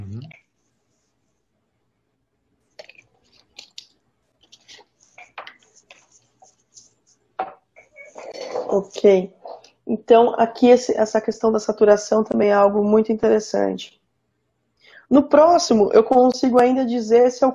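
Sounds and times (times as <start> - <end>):
person drinking water: 2.8 - 6.7
speech: 8.7 - 14.0, 15.1 - 17.5.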